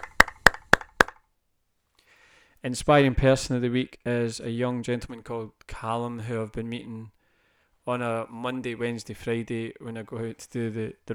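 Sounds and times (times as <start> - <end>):
round of applause: 0.0 - 1.1
speech: 2.6 - 7.2, 7.9 - 11.1.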